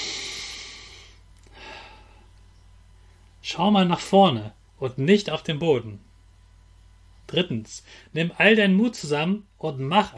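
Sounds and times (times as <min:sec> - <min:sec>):
deep calm breathing in a calming exercise: 0:00.0 - 0:02.3, 0:07.8 - 0:08.2
speech: 0:03.5 - 0:06.1, 0:07.3 - 0:10.1.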